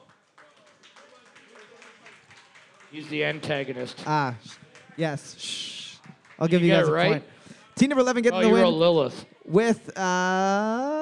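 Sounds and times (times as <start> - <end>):
audience applause: 0.0 - 7.1
speech: 2.9 - 5.7, 6.4 - 10.8.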